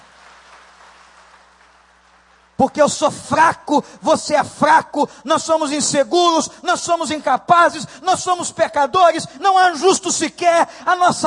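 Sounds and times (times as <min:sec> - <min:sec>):
audience applauding: 0:00.0 - 0:02.6
speech: 0:02.6 - 0:11.2.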